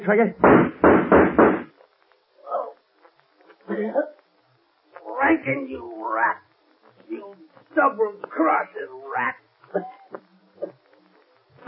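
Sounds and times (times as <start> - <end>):
speech: 0.1 - 0.7, 3.8 - 4.1, 5.4 - 10.2
heavy knocks on a door: 0.4 - 1.7.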